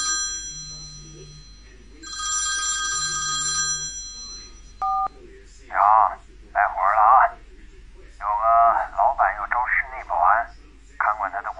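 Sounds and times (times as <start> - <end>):
telephone ringing with electronic tone: 0.0 - 5.2
faint low hum: 0.0 - 11.5.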